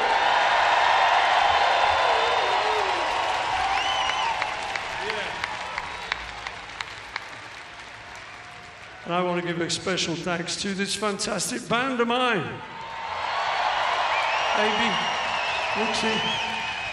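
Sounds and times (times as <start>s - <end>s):
concert audience cheering loudly: 0.0s - 10.2s, 12.7s - 16.9s
large concert audience applauding: 0.0s - 10.2s, 12.8s - 16.9s
whoops and whistles from concert audience: 3.6s - 4.5s, 14.1s - 16.9s
speech: 9.1s - 12.8s, 14.6s - 15.1s, 15.8s - 16.6s.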